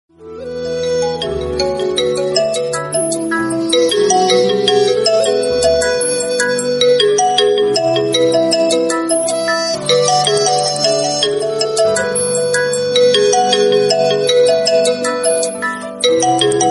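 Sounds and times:
vivo V19 Pro mobile phone tone: 0.8s - 16.6s.

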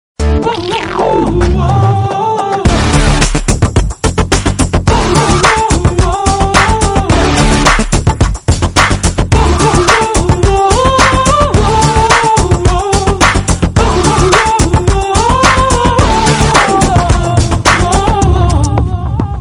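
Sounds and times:
movie background music: 0.2s - 19.4s.

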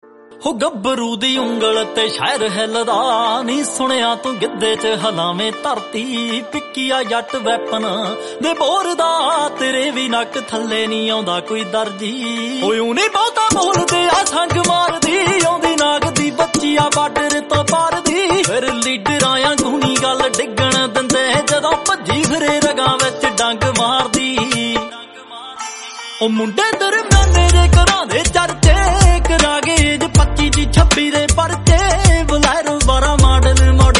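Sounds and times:
Punjabi music: 0.0s - 33.9s.

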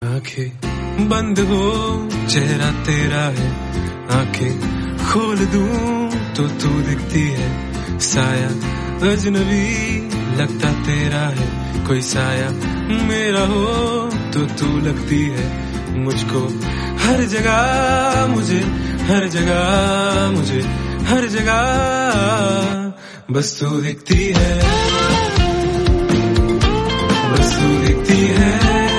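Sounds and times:
Hindi song: 0.7s - 22.9s, 24.1s - 28.9s.

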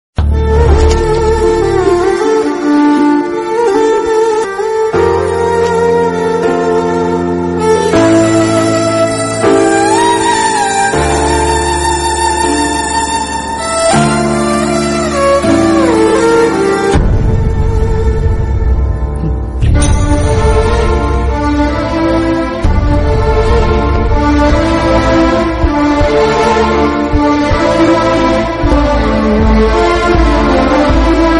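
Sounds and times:
background music: 0.2s - 31.3s.

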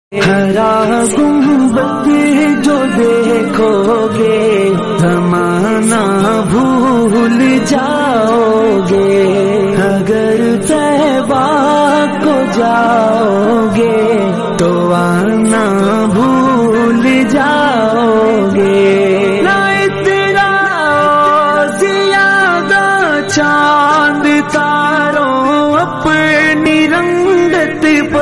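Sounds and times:
Islamic devotional naat singing: 0.2s - 28.2s.

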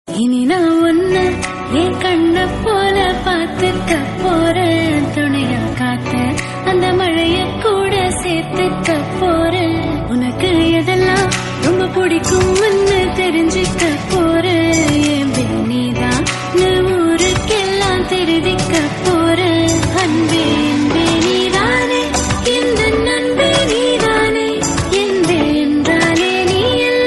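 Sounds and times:
Tamil love song: 0.1s - 27.0s.

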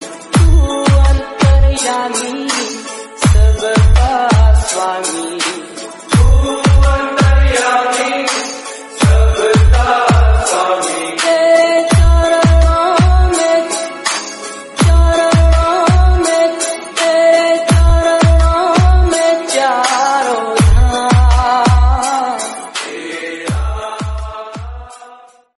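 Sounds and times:
Hindi song: 0.0s - 25.1s.

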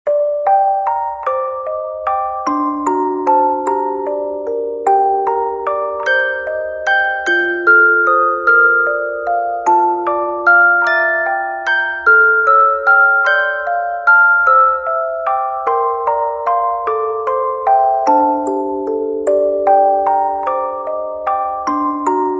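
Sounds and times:
music box background music: 0.1s - 22.3s.

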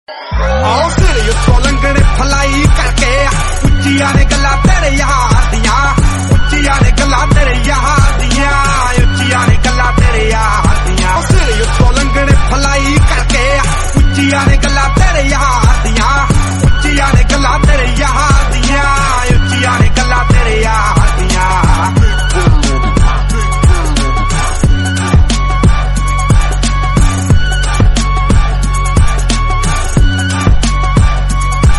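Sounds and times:
Punjabi attitude music: 0.1s - 31.7s.

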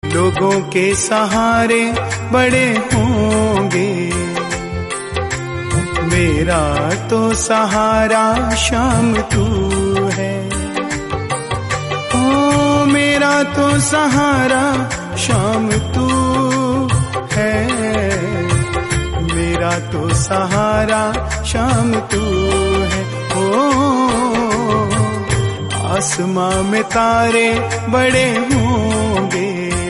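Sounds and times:
romantic Hindi song remix: 0.0s - 29.8s.

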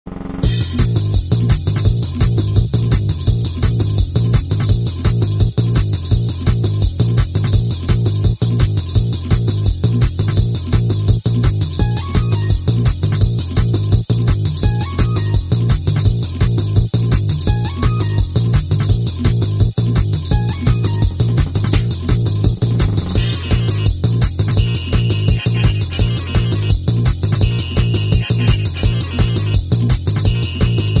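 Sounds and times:
trance music: 0.1s - 30.9s.

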